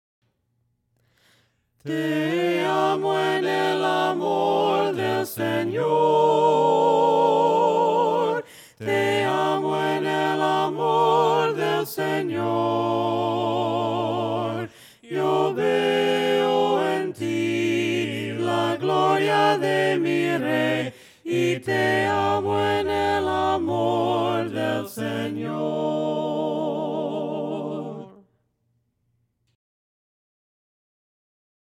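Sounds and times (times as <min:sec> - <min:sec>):
voices singing hymns a cappella: 0:01.8 - 0:28.3.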